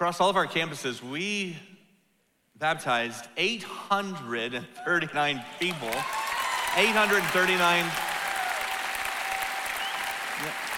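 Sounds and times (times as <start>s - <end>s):
speech: 0.0s - 1.7s, 2.6s - 6.2s, 6.8s - 8.1s
audience clapping: 5.3s - 10.7s.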